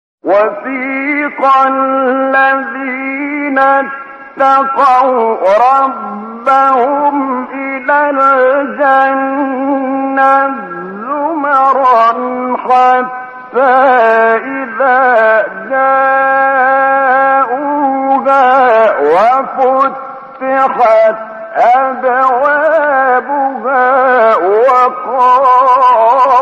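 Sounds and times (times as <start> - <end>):
recitation of a Quran verse: 0.2 - 26.4.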